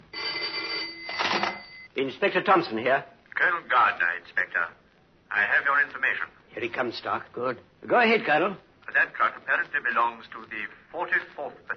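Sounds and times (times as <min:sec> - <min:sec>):
telephone bell ringing: 0:00.0 - 0:01.9
speech: 0:02.0 - 0:11.7.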